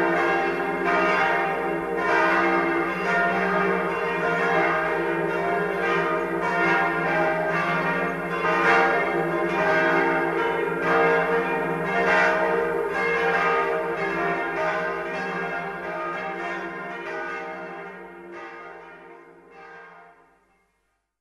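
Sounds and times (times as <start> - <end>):
bells ringing in Hartkirchen am Inn: 0.0 - 20.1.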